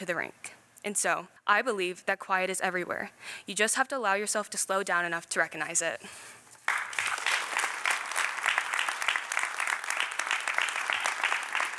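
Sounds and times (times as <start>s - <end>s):
speech: 0.0s - 6.8s
crowd applauding: 6.7s - 11.7s.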